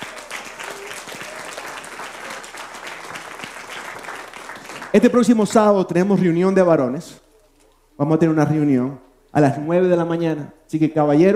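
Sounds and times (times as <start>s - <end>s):
audience applause: 0.0s - 5.4s
speech: 4.9s - 7.2s, 8.0s - 11.3s.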